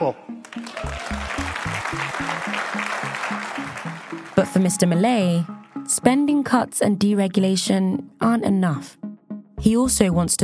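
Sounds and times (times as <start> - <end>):
speech: 0.0 - 0.7, 4.6 - 9.0, 9.6 - 10.4
enthusiastic audience applause: 0.4 - 4.4.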